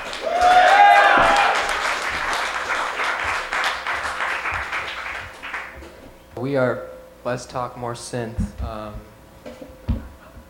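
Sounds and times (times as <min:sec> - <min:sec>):
cheering voices: 0:00.0 - 0:03.3
audience applause: 0:00.0 - 0:05.8
speech: 0:06.4 - 0:09.2.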